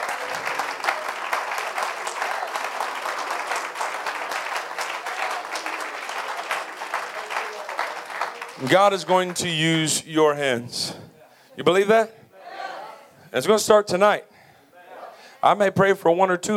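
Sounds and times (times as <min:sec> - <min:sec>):
audience clapping hands: 0:00.0 - 0:10.0
speech: 0:08.6 - 0:11.0, 0:11.6 - 0:12.2, 0:13.3 - 0:14.3, 0:15.4 - 0:16.5.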